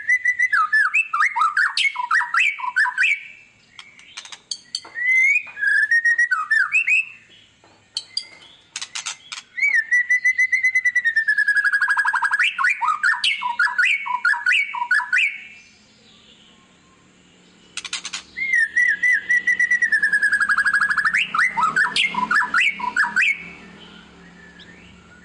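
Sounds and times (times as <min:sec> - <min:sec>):
white-rumped shama song with whistles and clicks: 0:00.0 - 0:07.3, 0:08.0 - 0:17.1, 0:17.8 - 0:25.2.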